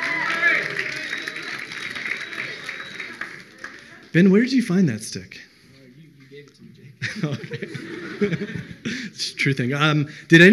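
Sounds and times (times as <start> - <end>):
audience applause: 0.0 - 4.1
voices cheering: 0.0 - 4.1
speech: 4.1 - 5.5, 6.4 - 10.5
laughter: 6.9 - 9.3.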